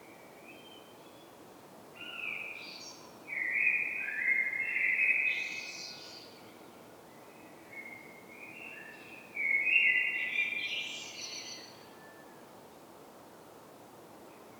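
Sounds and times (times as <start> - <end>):
common blackbird Turdus merula song with fluted whistled phrases: 2.0 - 12.4.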